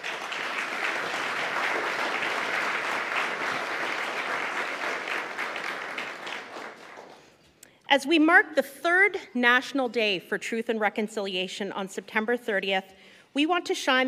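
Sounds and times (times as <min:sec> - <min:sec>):
audience applause welcoming students and assistant professors: 0:00.0 - 0:07.2
speech: 0:07.9 - 0:14.0.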